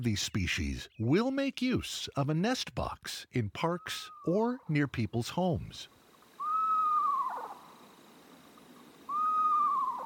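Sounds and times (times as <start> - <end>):
speech: 0.0 - 6.0
screech owl call: 6.3 - 10.0.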